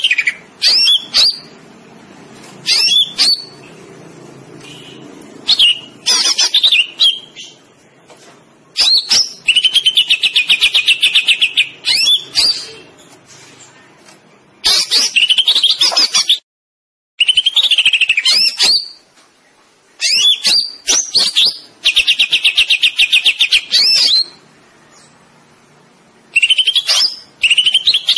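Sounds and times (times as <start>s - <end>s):
greater green leafbird song with trills and whistles: 0.0s - 1.6s, 2.6s - 3.8s, 4.6s - 7.7s, 8.8s - 13.1s, 14.6s - 16.4s, 17.2s - 19.0s, 20.0s - 25.2s, 26.3s - 28.1s.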